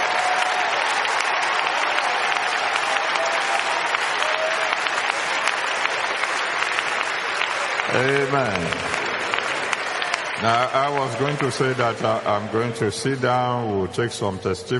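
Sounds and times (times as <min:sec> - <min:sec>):
church congregation applauding: 0:00.0 - 0:14.3
speech: 0:08.0 - 0:09.0, 0:10.4 - 0:14.7.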